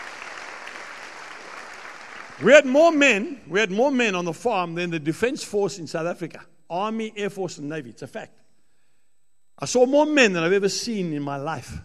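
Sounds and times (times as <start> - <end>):
crowd applause: 0.0 - 2.8
speech: 2.4 - 8.4, 9.6 - 11.8.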